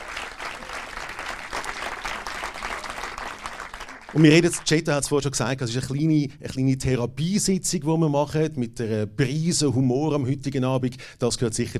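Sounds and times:
live audience applause: 0.0s - 4.8s
speech: 4.1s - 11.7s.

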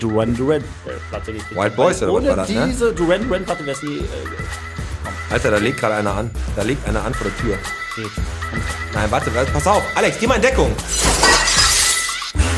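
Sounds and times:
speech: 0.0s - 11.2s
window glass shattering: 10.9s - 12.4s.

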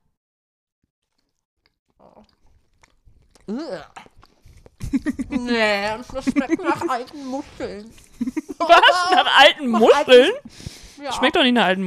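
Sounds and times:
people biting into and chewing a soft milk bread: 1.0s - 9.3s
speech: 3.5s - 4.1s, 4.9s - 11.8s.

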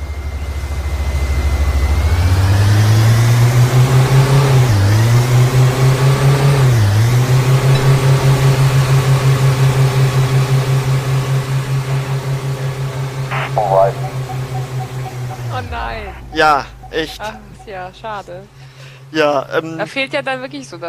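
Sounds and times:
game car engine droning: 0.3s - 19.6s
speech: 16.4s - 20.8s.

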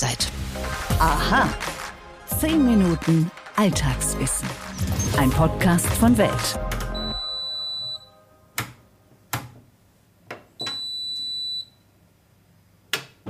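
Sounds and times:
speech: 0.0s - 1.8s, 2.4s - 6.7s
washing machine electronic beeps: 7.0s - 8.2s, 10.6s - 11.8s.

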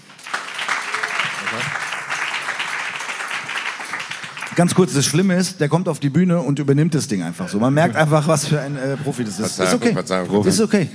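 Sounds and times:
audience applause: 0.0s - 5.3s
speech: 4.6s - 10.9s.

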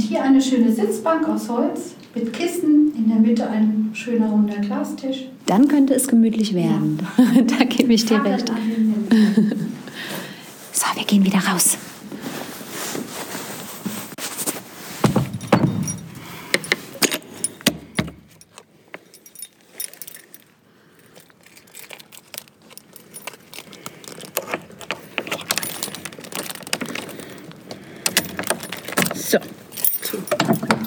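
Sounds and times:
speech: 0.1s - 9.1s, 10.9s - 12.4s
heavy tower door thudding shut: 15.0s - 16.3s
keys jingling: 15.1s - 30.8s.

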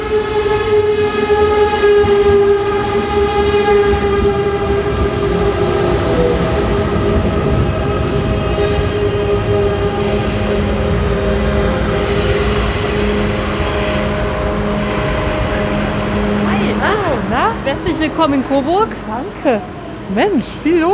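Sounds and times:
ICE high-speed train rumbling through station: 0.0s - 20.9s
squealing train wheels: 8.0s - 16.0s
speech: 18.1s - 20.9s.

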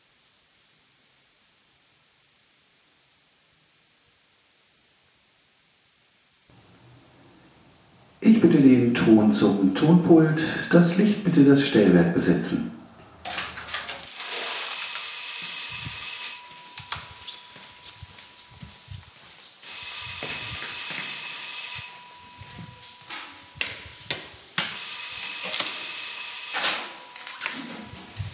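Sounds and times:
speech: 8.3s - 12.8s
electric theatre bell ringing, third signal before a show: 14.1s - 28.3s.

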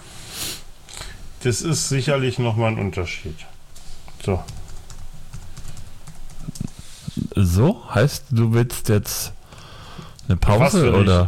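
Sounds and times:
speech: 1.4s - 3.6s, 4.2s - 4.6s, 7.4s - 9.4s, 10.3s - 11.2s
fingers typing a reminder on a computer keyboard: 4.4s - 6.7s.

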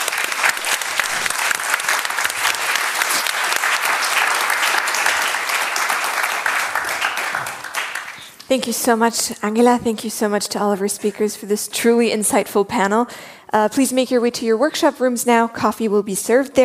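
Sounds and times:
audience applause for panel: 0.0s - 8.5s
speech: 8.5s - 16.6s.

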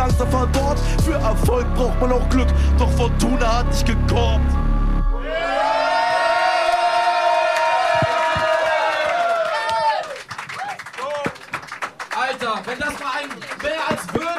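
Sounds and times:
speech: 0.1s - 4.7s
crowd roaring and cheering: 5.1s - 14.3s
scattered clapping: 6.3s - 14.3s.

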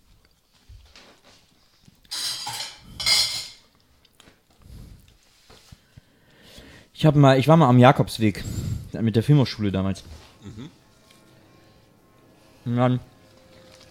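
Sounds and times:
cutlery clinking: 2.1s - 3.8s
speech: 7.0s - 10.8s, 12.7s - 13.1s.

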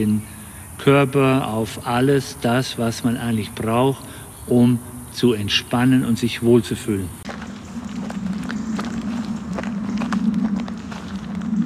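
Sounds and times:
speech: 0.0s - 7.2s
steady low hum: 7.1s - 11.6s
footsteps of people strolling very slowly: 7.2s - 11.6s.

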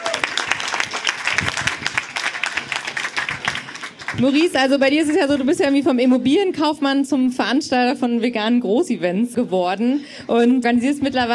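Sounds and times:
audience applause: 0.0s - 5.8s
speech: 4.2s - 11.3s.

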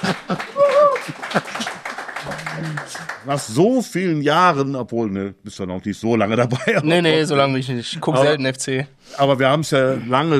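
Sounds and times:
laughter: 0.0s - 3.2s, 6.3s - 8.2s
small group clapping: 0.0s - 3.6s
speech: 0.3s - 0.5s, 3.2s - 10.3s.

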